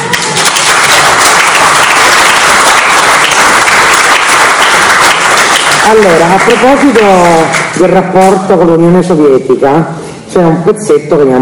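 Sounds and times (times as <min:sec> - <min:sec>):
audience applause: 0:00.0 - 0:07.8
speech: 0:05.9 - 0:11.4.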